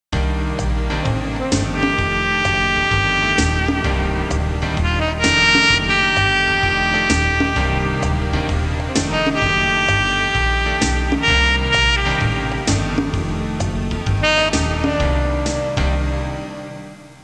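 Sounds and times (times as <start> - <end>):
jazz music ringtone: 0.8 - 17.1.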